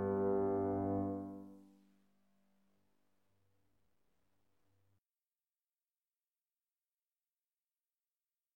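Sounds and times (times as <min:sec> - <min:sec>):
karaoke cello: 0:00.0 - 0:01.5.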